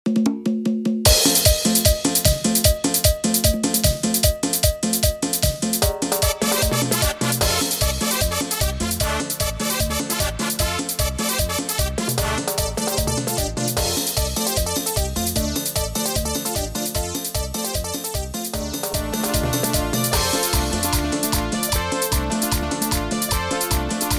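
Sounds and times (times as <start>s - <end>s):
instrumental cover at 151 BPM: 0.3s - 24.1s.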